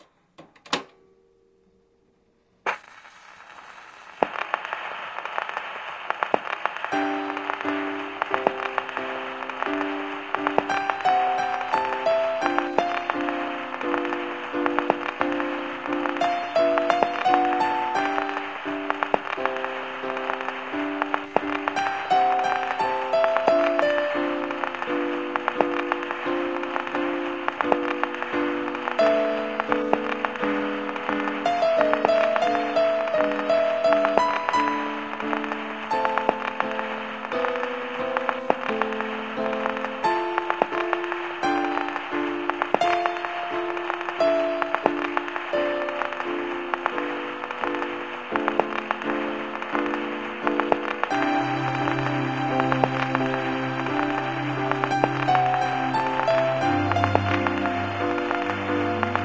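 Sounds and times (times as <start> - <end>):
music: 4.1 - 59.2.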